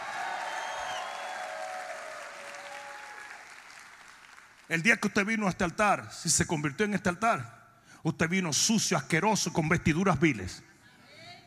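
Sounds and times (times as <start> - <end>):
audience applauding: 0.0 - 4.8
speech: 4.7 - 10.7.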